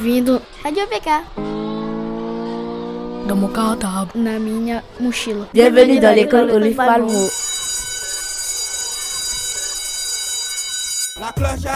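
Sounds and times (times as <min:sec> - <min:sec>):
speech: 0:00.0 - 0:01.6, 0:03.2 - 0:07.5, 0:11.2 - 0:11.7
school bell ringing: 0:06.6 - 0:11.6.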